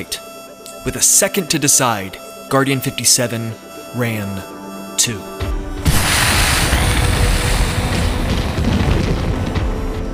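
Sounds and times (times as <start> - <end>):
speech: 0.0 - 5.6
loud explosion blast in an audio drama: 5.8 - 10.1.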